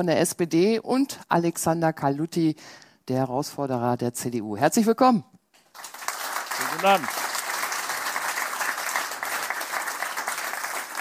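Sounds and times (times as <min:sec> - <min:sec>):
speech: 0:00.0 - 0:06.0, 0:06.8 - 0:07.2
studio audience of guests applauding at Lensing Mediaport: 0:05.7 - 0:11.0.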